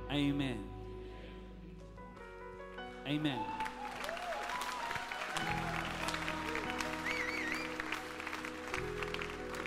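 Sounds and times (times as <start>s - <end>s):
speech: 0.1s - 0.7s, 3.1s - 3.6s
audience clapping: 3.4s - 9.6s
whoops and voices: 3.7s - 6.2s, 7.0s - 7.8s.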